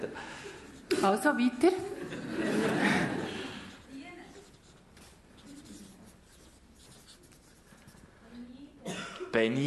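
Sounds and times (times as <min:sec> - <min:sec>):
speech: 0:01.0 - 0:02.8, 0:09.4 - 0:09.6
laughter: 0:01.9 - 0:03.7
pen scratching on paper: 0:04.2 - 0:07.9.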